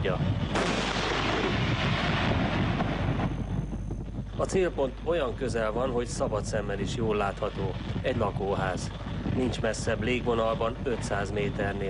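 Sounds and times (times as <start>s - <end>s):
speech: 0.0s - 0.7s, 4.4s - 11.8s
tank cannon firing at a village: 0.5s - 3.3s.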